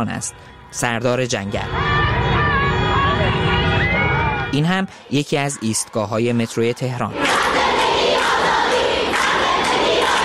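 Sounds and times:
speech: 0:00.0 - 0:02.2, 0:04.5 - 0:07.7
street crowd chanting protest slogans: 0:01.7 - 0:04.5, 0:07.1 - 0:10.2.

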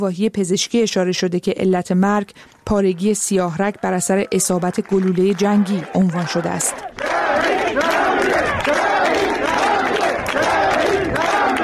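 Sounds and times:
speech: 0:00.0 - 0:08.3
crowd chanting at a burial: 0:05.9 - 0:11.6.

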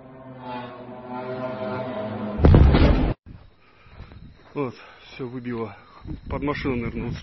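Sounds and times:
steady humming tone: 0:00.0 - 0:03.2
explosion during Ukrainian drone attack on Voronezh Russia: 0:02.4 - 0:03.2
speech: 0:04.6 - 0:07.2.

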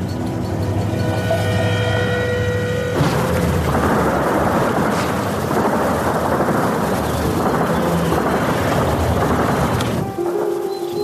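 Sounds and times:
shelling: 0:00.0 - 0:11.0
distant automatic gunfire: 0:03.0 - 0:10.4.

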